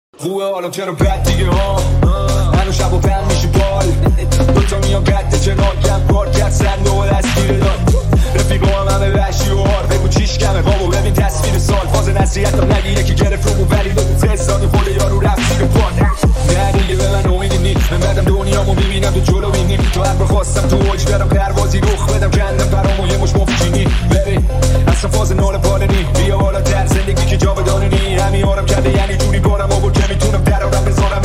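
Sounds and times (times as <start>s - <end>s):
remix music: 0.2s - 31.2s.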